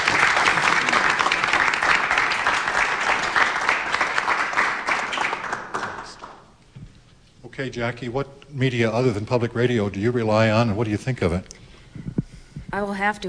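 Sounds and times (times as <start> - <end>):
audience applause: 0.0 - 6.4
speech: 7.6 - 11.6, 12.7 - 13.2.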